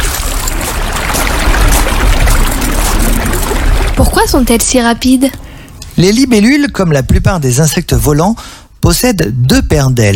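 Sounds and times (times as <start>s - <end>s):
flowing river water: 0.0s - 4.8s
speech: 4.3s - 10.1s.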